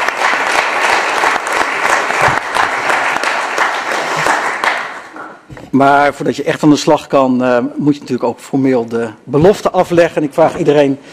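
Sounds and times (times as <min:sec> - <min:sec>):
audience applause at a council meeting: 0:00.0 - 0:05.4
speech: 0:05.7 - 0:11.1.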